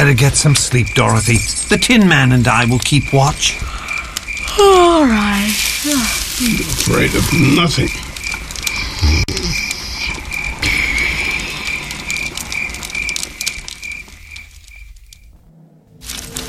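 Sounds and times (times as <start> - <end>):
speech: 0.0 - 3.8, 4.6 - 8.0
insects hissing in a night forest: 0.0 - 15.4
frogs croaking in a night forest: 0.0 - 16.4.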